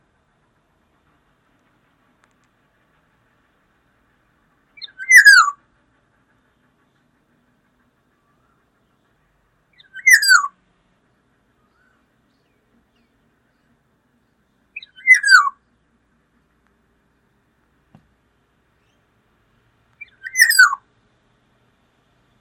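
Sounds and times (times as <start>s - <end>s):
Black-naped oriole calls: 4.8s - 12.2s, 14.8s - 15.6s, 20.0s - 20.8s.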